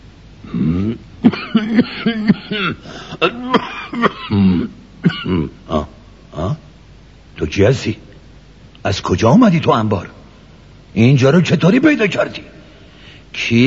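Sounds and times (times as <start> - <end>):
man coughing and clearing his throat: 0.5 - 6.6
speech: 2.6 - 3.6, 7.5 - 8.1, 8.8 - 10.2, 10.9 - 12.6, 13.4 - 13.6.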